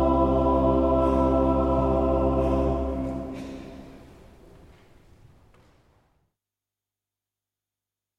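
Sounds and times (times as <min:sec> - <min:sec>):
choir singing a motet: 0:00.0 - 0:04.2.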